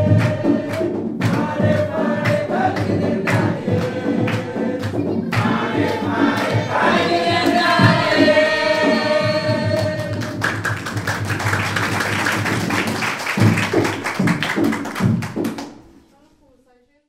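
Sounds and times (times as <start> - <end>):
people singing in Ouagadougou: 0.0 - 10.7
djembe drumming in Ouagadougou: 0.0 - 15.9
hands clapping in Ouagadougou: 0.1 - 9.1, 9.7 - 15.9.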